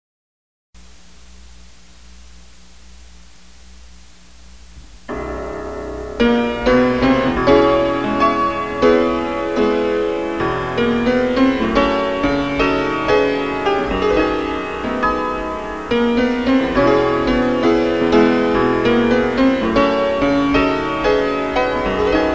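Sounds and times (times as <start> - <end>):
piano: 4.6 - 22.3.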